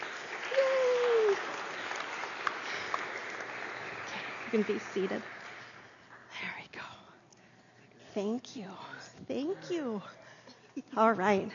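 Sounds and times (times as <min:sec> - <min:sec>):
audience applause: 0:00.0 - 0:06.2
speech: 0:04.5 - 0:05.4, 0:08.2 - 0:10.2, 0:10.8 - 0:11.5.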